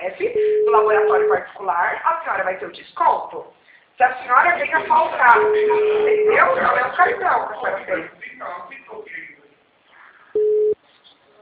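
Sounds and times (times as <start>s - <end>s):
telephone busy tone after a dropped call: 0.4s - 1.4s, 5.4s - 6.5s, 10.4s - 10.8s
speech: 0.8s - 9.2s.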